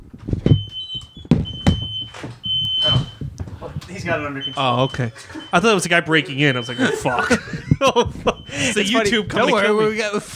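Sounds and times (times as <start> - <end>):
garbage truck beeping: 0.5 - 9.5
speech: 4.0 - 10.3
laughter: 4.6 - 10.3.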